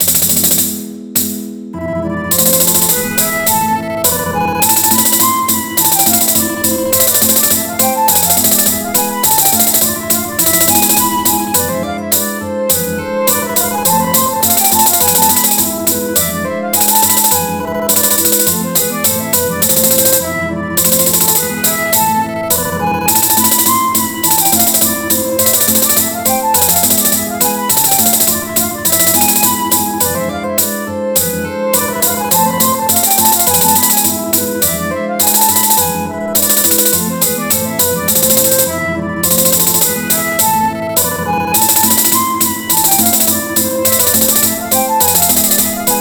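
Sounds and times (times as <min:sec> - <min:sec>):
Maltese folk song and dance music: 0:00.0 - 0:45.9.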